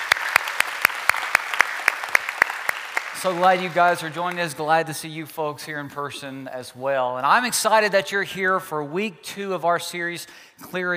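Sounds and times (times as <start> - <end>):
church congregation applause: 0.0 - 4.9
speech: 3.2 - 10.9.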